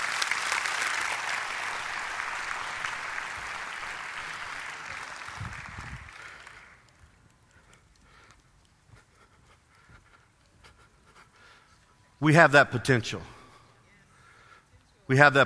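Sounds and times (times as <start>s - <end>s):
sustained audience applause: 0.0s - 7.0s
speech: 12.2s - 13.4s, 15.1s - 15.4s.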